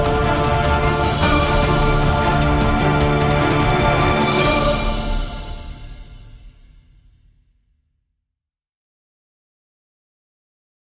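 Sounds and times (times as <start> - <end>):
power film trailer music: 0.0 - 7.8.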